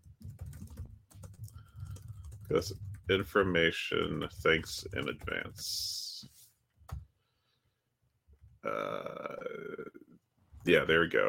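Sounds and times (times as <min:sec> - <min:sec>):
typing on a computer keyboard: 0:00.0 - 0:03.3, 0:04.4 - 0:05.6
speech: 0:02.5 - 0:06.0, 0:08.7 - 0:10.0, 0:10.6 - 0:11.2.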